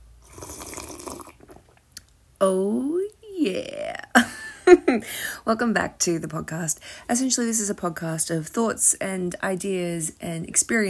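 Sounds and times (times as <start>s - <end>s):
wet drawn-out slurp of hot coffee: 0.2s - 1.8s
speech: 2.4s - 3.8s, 4.9s - 10.8s.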